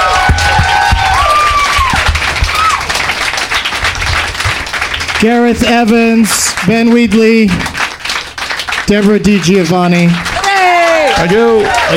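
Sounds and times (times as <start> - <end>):
audience applause for the guests: 0.0 - 11.9
speech: 5.2 - 7.7, 8.9 - 10.3, 11.2 - 11.9.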